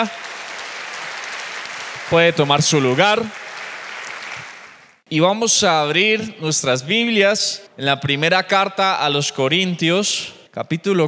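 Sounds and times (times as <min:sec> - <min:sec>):
speech: 0:00.0 - 0:00.3, 0:02.1 - 0:03.4, 0:05.1 - 0:11.0
audience applauding: 0:00.0 - 0:05.0.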